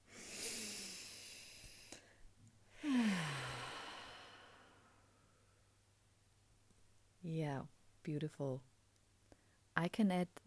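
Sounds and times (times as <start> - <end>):
long deep breath during a calm guided moment: 0.0 - 5.6
faint small noises: 0.0 - 10.4
speech: 7.3 - 8.7, 9.8 - 10.4.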